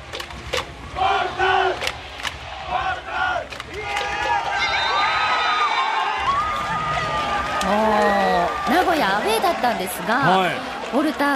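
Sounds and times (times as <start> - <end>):
crowd cheering: 0.0 - 11.3
speech: 9.1 - 11.3.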